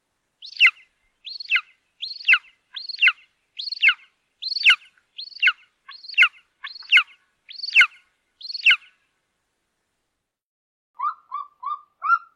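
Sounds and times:
African black eagle calling: 0:00.4 - 0:09.0, 0:11.0 - 0:12.3.

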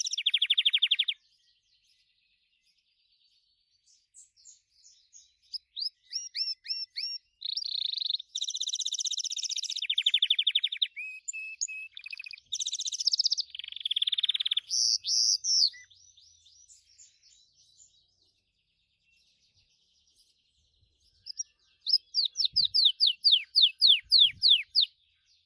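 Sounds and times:
Gloster canary singing: 0:00.0 - 0:01.2, 0:04.2 - 0:18.2, 0:21.0 - 0:25.0.

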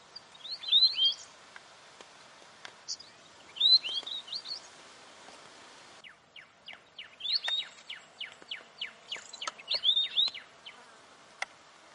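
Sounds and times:
weebill singing ticking notes and warbled phrases: 0:00.1 - 0:01.3, 0:02.9 - 0:04.7, 0:06.0 - 0:10.8.

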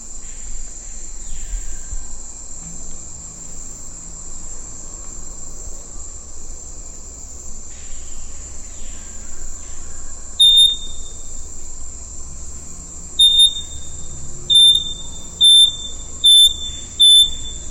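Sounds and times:
wing-banded wren whistling song: 0:07.8 - 0:17.6.

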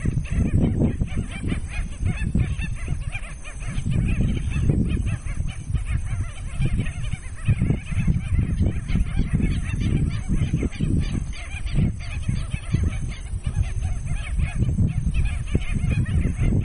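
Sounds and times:
white-backed stilt calling with short sharp yelping notes: 0:00.0 - 0:16.6.

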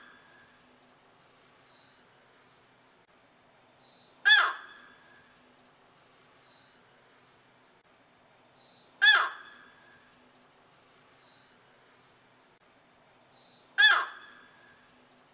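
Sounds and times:
yellow-crowned night heron giving harsh squawks: 0:04.2 - 0:04.7, 0:09.0 - 0:09.6, 0:13.8 - 0:14.4.

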